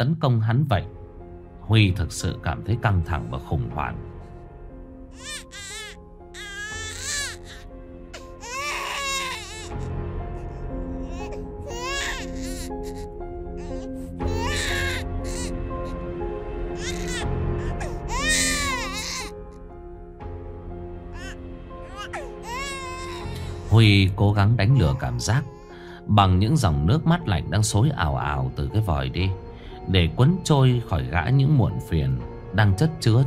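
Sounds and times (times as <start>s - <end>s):
speech: 0.0s - 1.0s, 1.7s - 4.1s, 5.2s - 5.8s, 23.8s - 33.2s
infant wailing and sobbing: 5.2s - 9.8s, 10.4s - 16.0s, 16.8s - 19.3s, 21.1s - 23.7s, 24.6s - 25.8s.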